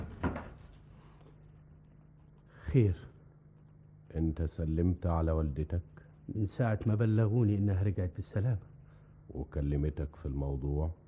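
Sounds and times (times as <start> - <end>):
door closing: 0.0 - 0.8
speech: 2.8 - 3.1, 4.2 - 8.7, 9.3 - 11.0.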